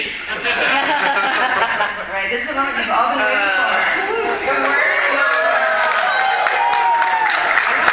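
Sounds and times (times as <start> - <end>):
laughter: 0.2 - 5.2
people whooping: 3.7 - 7.9
audience clapping: 4.1 - 7.9.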